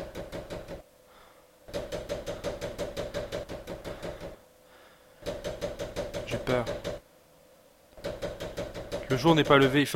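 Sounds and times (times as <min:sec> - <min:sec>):
loud knocking on a door: 0:00.0 - 0:00.8, 0:01.7 - 0:04.4, 0:05.2 - 0:07.0, 0:08.0 - 0:09.8
speech: 0:06.3 - 0:06.9, 0:09.1 - 0:09.9.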